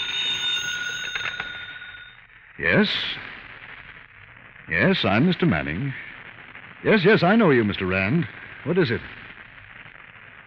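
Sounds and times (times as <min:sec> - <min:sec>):
telephone ringing: 0:00.0 - 0:02.2
speech: 0:02.6 - 0:03.3, 0:04.7 - 0:06.0, 0:06.8 - 0:09.2.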